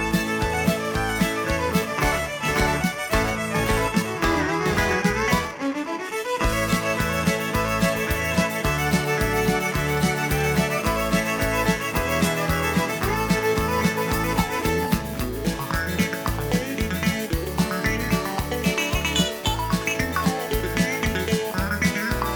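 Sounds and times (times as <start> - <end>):
Cajun fiddle music: 0.0 - 22.3.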